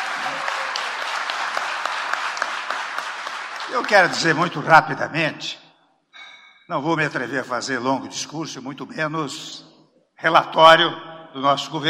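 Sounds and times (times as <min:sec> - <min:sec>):
audience applause: 0:00.0 - 0:04.6
speech: 0:03.7 - 0:05.6, 0:06.7 - 0:11.8.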